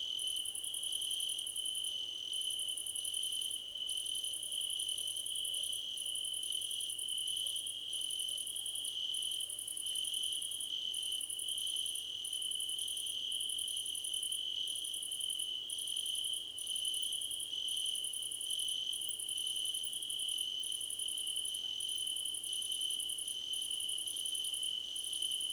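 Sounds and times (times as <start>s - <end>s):
cricket chorus: 0.0s - 25.5s.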